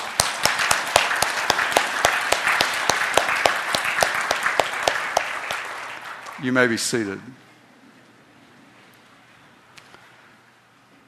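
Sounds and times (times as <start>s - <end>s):
audience applauding: 0.0s - 7.1s
speech: 6.4s - 7.5s.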